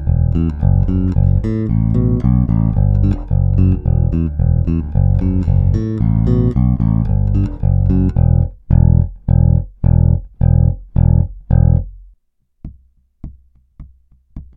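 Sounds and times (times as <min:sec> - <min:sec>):
bass samples: 0:00.0 - 0:12.2.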